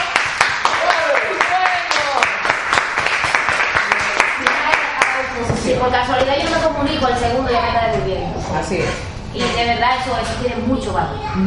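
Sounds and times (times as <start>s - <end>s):
audience applause: 0.0s - 5.2s
speech: 5.8s - 11.4s.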